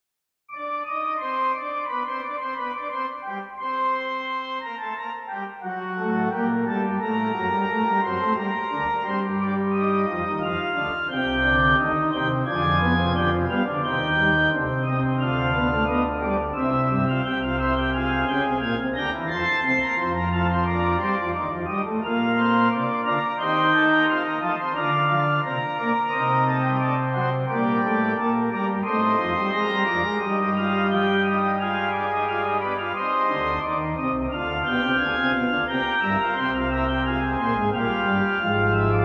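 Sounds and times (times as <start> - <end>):
fugue in C minor: 0.5 - 39.0.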